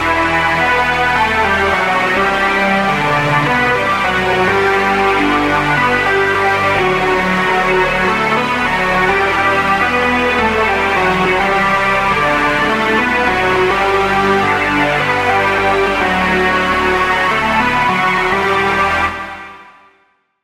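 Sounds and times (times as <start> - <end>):
lead melody: 0.0 - 19.8.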